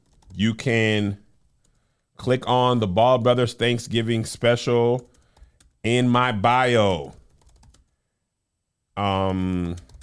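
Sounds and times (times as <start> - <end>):
typing on a computer keyboard while writing an email: 0.0 - 0.4, 5.0 - 5.8, 6.9 - 7.9, 9.3 - 10.0
speech: 0.4 - 1.2, 2.2 - 5.1, 5.8 - 7.2, 9.0 - 9.9.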